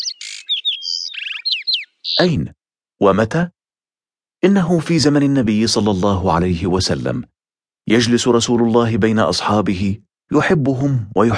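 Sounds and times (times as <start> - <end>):
lark singing: 0.0 - 2.5
speech: 2.2 - 3.6, 4.4 - 11.3.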